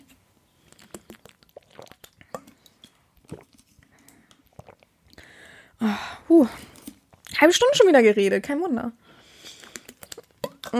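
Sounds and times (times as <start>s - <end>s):
wet mouth clicks of a person sipping a drink: 0.6s - 5.2s, 9.4s - 10.6s
person swallowing a sip of a drink: 0.7s - 2.4s, 3.2s - 3.6s, 4.4s - 5.2s
speech: 5.8s - 6.7s, 7.4s - 9.0s.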